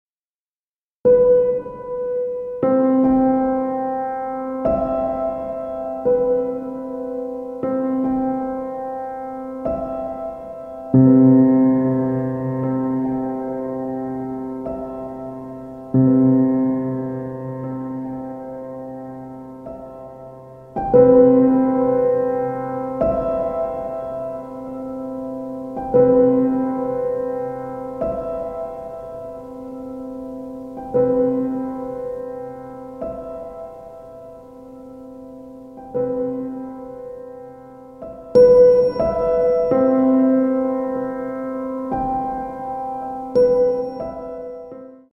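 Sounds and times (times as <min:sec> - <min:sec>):
piano: 0:01.0 - 0:45.1.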